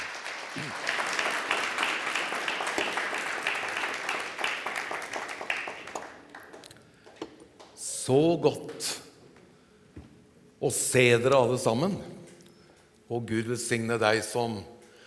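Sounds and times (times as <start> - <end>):
warm audience applause: 0.0 - 6.8
speech: 0.6 - 0.9, 8.1 - 9.0, 10.6 - 12.2, 13.1 - 14.7.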